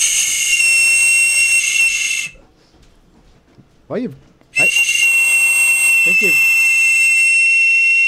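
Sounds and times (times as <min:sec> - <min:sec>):
toy whistle blown hard: 0:00.0 - 0:02.4, 0:04.6 - 0:08.0.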